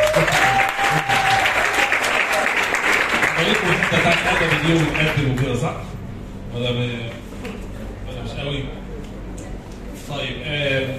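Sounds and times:
audience applause: 0.0s - 5.6s
speech: 3.5s - 6.0s, 6.6s - 7.2s, 8.4s - 8.8s, 10.1s - 10.9s.

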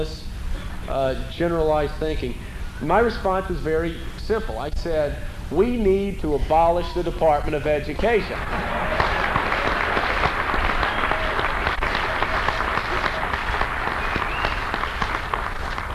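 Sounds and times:
speech: 0.0s - 0.3s, 0.9s - 8.8s
audience applause: 8.3s - 15.9s.

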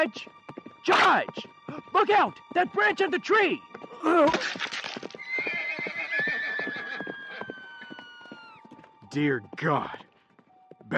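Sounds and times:
speech: 0.0s - 4.8s, 9.2s - 10.0s
galloping horse hoofbeats in a radio drama: 0.0s - 10.9s
horse whinnying in a radio drama: 4.2s - 8.8s.

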